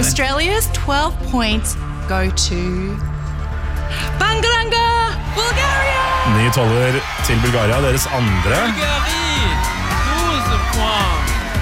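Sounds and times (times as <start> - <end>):
speech: 0.2 - 3.2, 3.9 - 11.3
delegation cheering and shouting in green room: 5.2 - 11.5.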